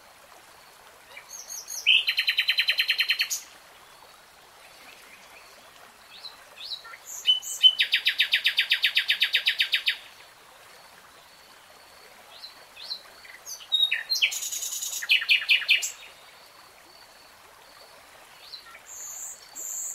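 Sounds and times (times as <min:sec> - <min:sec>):
nightingale singing rattling trills: 0:01.1 - 0:03.5, 0:06.1 - 0:10.1, 0:12.4 - 0:16.2.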